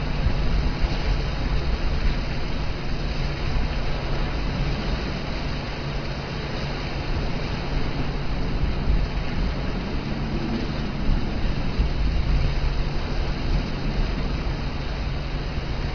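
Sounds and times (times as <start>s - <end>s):
hurricane winds: 0.0s - 15.9s.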